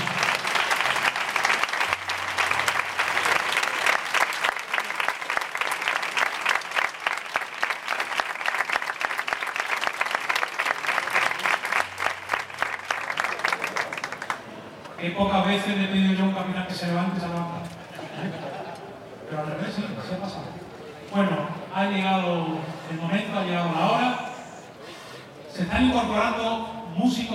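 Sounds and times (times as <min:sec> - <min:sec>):
audience applause: 0:00.0 - 0:14.8
speech: 0:15.2 - 0:17.5, 0:21.1 - 0:24.2, 0:25.7 - 0:27.3
laughter: 0:17.8 - 0:19.3.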